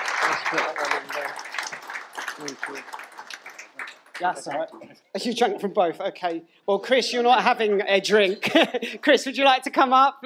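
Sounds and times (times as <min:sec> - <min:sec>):
audience applause: 0:00.0 - 0:04.8
speech: 0:00.3 - 0:01.8, 0:02.4 - 0:03.0, 0:04.2 - 0:10.2.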